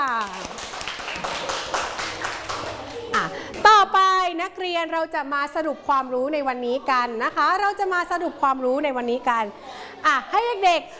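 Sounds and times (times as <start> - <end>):
students clapping for themselves: 0.0 - 3.6
speech: 4.4 - 10.9.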